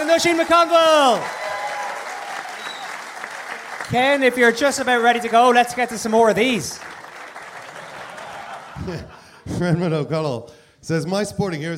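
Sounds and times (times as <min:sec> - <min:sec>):
live audience clapping: 0:00.0 - 0:09.1
speech: 0:00.1 - 0:01.4, 0:03.9 - 0:07.0, 0:08.8 - 0:11.7
laughter: 0:07.5 - 0:09.7.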